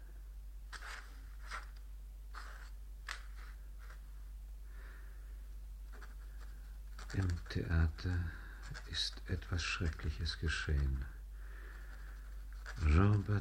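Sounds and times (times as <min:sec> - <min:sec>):
low steady hum: 0:00.0 - 0:13.4
pen scratching as a lily symbol is drawn: 0:00.7 - 0:04.0, 0:05.9 - 0:11.1, 0:11.7 - 0:13.4
speech: 0:07.1 - 0:11.2, 0:12.8 - 0:13.4.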